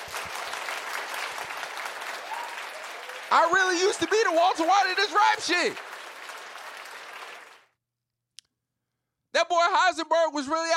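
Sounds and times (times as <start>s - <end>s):
hand claps: 0.0s - 7.7s
speech: 3.3s - 5.9s, 9.4s - 10.7s.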